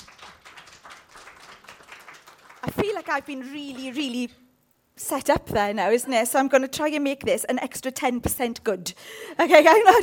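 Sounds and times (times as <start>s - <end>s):
audience applause: 0.0s - 4.0s
speech: 2.6s - 4.4s, 5.1s - 10.0s.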